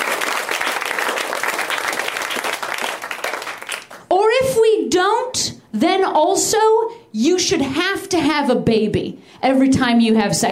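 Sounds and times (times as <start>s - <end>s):
audience clapping and applause: 0.0s - 4.1s
speech: 5.4s - 10.4s.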